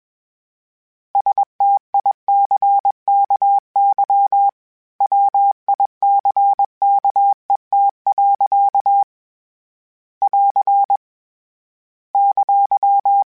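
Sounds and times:
Morse code beeps of word pairs: 0:01.2 - 0:09.1, 0:10.2 - 0:11.0, 0:12.2 - 0:13.3.

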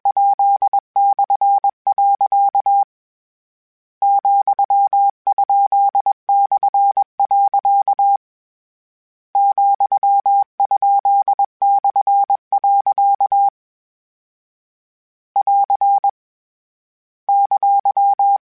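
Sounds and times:
Morse code CW code groups: 0:00.1 - 0:02.9, 0:04.0 - 0:08.2, 0:09.4 - 0:13.5, 0:15.4 - 0:16.2, 0:17.3 - 0:18.4.

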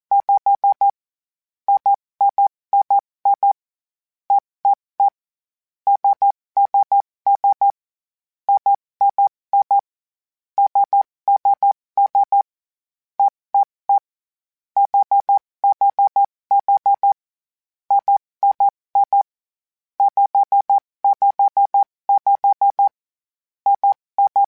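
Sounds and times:
morse code groups: 0:00.1 - 0:01.0, 0:01.7 - 0:03.6, 0:05.9 - 0:07.8, 0:08.5 - 0:09.8, 0:10.6 - 0:12.4, 0:14.8 - 0:17.2, 0:17.9 - 0:19.2, 0:20.0 - 0:23.0, 0:23.7 - 0:24.4.

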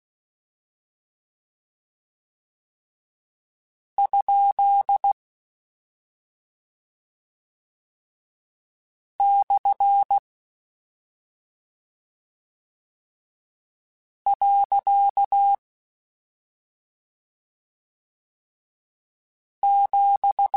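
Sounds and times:
Morse code CW code groups: 0:04.0 - 0:05.2, 0:09.2 - 0:10.2, 0:14.3 - 0:15.6, 0:19.6 - 0:20.5.

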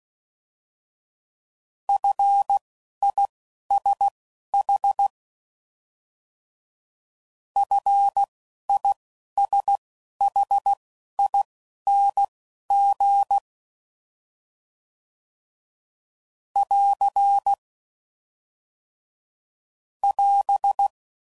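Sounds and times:
morse code beeps at 10 WPM: 0:02.0 - 0:05.1, 0:07.6 - 0:13.4, 0:16.6 - 0:17.6, 0:20.0 - 0:20.9.

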